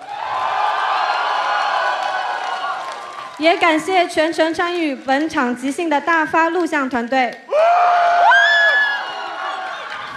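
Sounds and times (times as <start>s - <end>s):
crowd screaming and cheering: 0.0s - 3.6s, 7.5s - 10.1s
speech: 3.4s - 8.2s.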